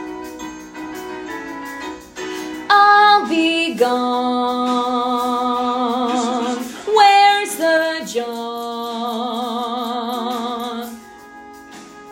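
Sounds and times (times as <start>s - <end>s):
melody with soprano voice: 2.2s - 11.2s.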